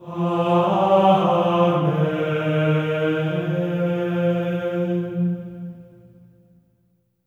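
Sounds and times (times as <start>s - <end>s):
choir singing amen in F4: 0.0s - 5.7s.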